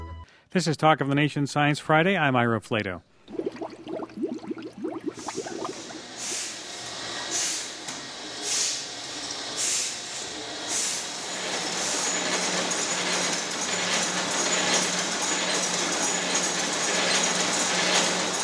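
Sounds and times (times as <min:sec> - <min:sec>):
speech: 0:00.5 - 0:03.1
bubbling of CO2 gas from beer fermentation: 0:03.2 - 0:06.6
beer bottling machinery: 0:03.2 - 0:18.4.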